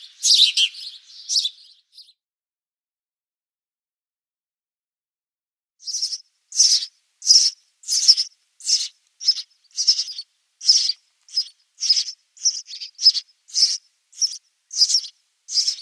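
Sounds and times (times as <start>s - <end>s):
house sparrow nestlings begging with high buzzy chirps: 0.0s - 2.2s, 5.8s - 15.8s.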